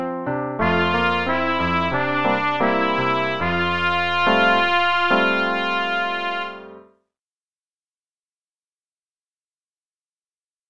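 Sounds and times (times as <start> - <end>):
trumpet: 0.6 - 6.9.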